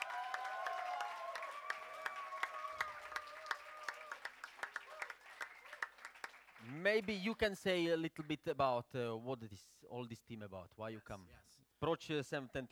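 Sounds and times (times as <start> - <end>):
audience clapping at a church mission gathering in Prague: 0.0 - 8.4
speech: 6.6 - 12.7.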